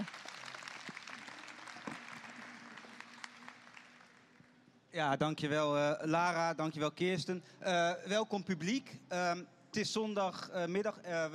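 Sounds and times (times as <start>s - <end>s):
audience applause: 0.0s - 4.4s
speech: 5.0s - 11.3s.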